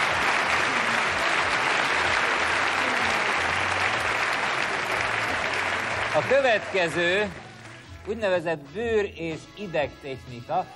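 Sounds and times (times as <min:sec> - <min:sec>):
audience applause: 0:00.0 - 0:07.8
speech: 0:06.2 - 0:07.4, 0:08.0 - 0:10.7.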